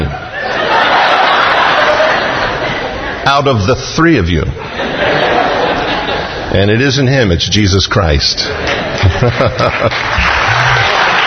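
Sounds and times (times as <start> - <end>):
laughter: 0.1 - 3.2, 4.6 - 6.5, 8.5 - 11.2
speech: 3.3 - 4.8, 6.5 - 10.8
audience clapping: 8.6 - 11.2.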